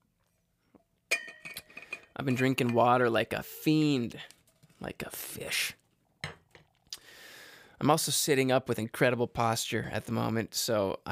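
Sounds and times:
water bottle clinking: 0:01.1 - 0:03.0
speech: 0:02.2 - 0:05.8, 0:07.8 - 0:11.0.

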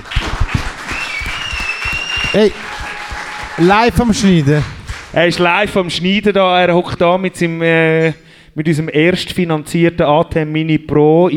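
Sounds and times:
applause from a small group: 0:00.0 - 0:05.5
faint whistle-like tone: 0:00.9 - 0:02.6
speech: 0:02.3 - 0:02.7, 0:03.6 - 0:11.3.

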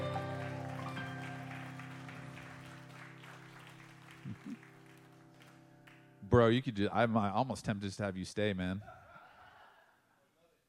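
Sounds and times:
audience round of applause: 0:00.0 - 0:06.1
speech: 0:04.3 - 0:04.7, 0:06.3 - 0:09.0.

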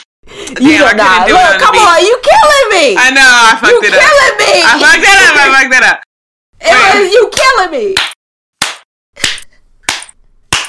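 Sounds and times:
speech: 0:00.5 - 0:08.1
hand claps in a clapping beat: 0:07.4 - 0:10.6.

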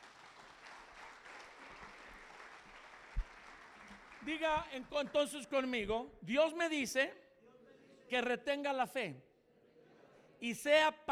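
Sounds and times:
audience applauding: 0:00.0 - 0:05.4
speech: 0:04.2 - 0:07.2, 0:08.1 - 0:09.3, 0:10.4 - 0:11.1.

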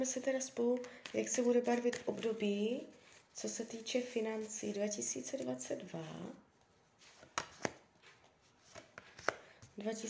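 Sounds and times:
speech: 0:00.0 - 0:06.4, 0:09.8 - 0:10.0
tarot cards shuffling: 0:00.8 - 0:03.2, 0:07.0 - 0:09.8.

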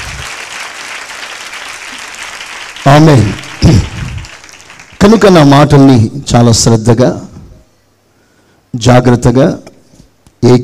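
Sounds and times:
congregation clapping to glorify God: 0:00.0 - 0:05.8
speech: 0:02.9 - 0:03.8, 0:05.0 - 0:07.3, 0:08.7 - 0:09.7, 0:10.4 - 0:10.6.

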